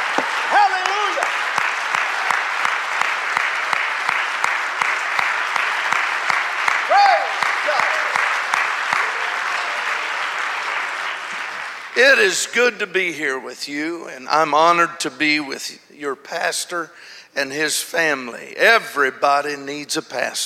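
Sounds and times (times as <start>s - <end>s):
audience clapping hands: 0.0s - 12.6s
speech: 12.0s - 20.4s.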